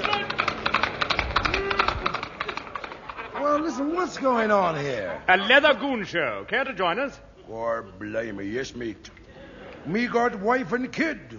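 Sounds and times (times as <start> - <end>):
horse hooves clip-clopping: 0.0 - 3.3
speech: 3.8 - 9.2, 9.8 - 11.3.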